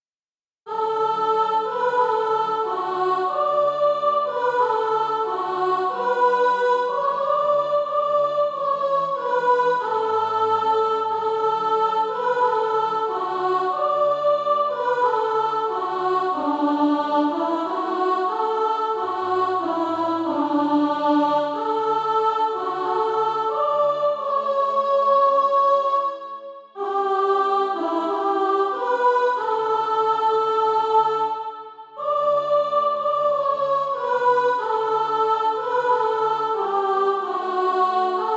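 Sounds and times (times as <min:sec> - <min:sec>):
soprano singing practice music: 0:00.7 - 0:38.3.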